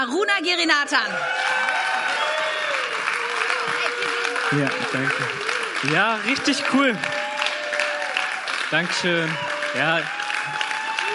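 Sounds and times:
speech: 0:00.0 - 0:01.6, 0:04.5 - 0:07.2, 0:08.7 - 0:11.1
audience applauding a speaker: 0:01.1 - 0:11.1.

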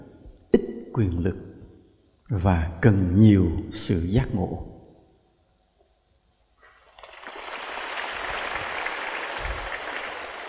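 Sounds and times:
speech: 0:01.0 - 0:01.5, 0:02.3 - 0:04.7
audience applauding at a spiritual teacher's talk: 0:06.7 - 0:10.4.

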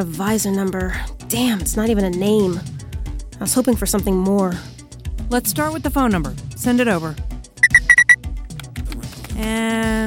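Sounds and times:
speech: 0:00.0 - 0:02.8, 0:03.4 - 0:04.7, 0:05.3 - 0:07.3, 0:09.4 - 0:10.0
high-pitched electronic notification pings: 0:07.6 - 0:08.2.

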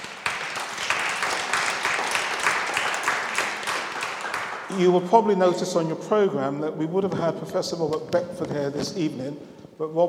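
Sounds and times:
audience applause: 0:00.0 - 0:04.9
speech: 0:04.7 - 0:10.0.

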